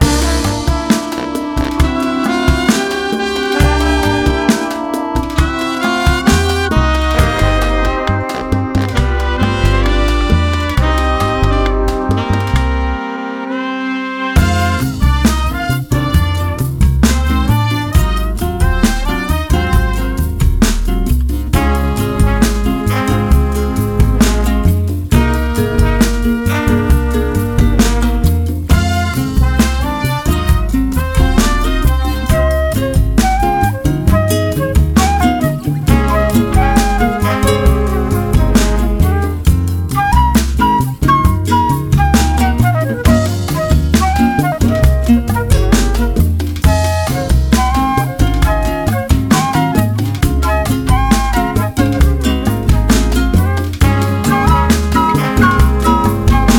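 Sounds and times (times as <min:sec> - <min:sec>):
Latino brass parade music: 0:00.0 - 0:56.5.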